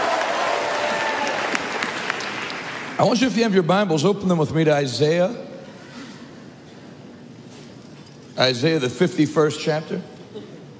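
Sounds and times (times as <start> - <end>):
audience hand clapping applause: 0.0 - 3.0
speech: 3.0 - 5.5, 8.4 - 10.4.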